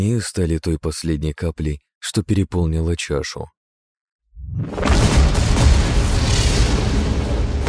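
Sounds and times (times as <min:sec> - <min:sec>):
speech: 0:00.0 - 0:03.6
magic runes burning out with a pop: 0:04.6 - 0:07.6.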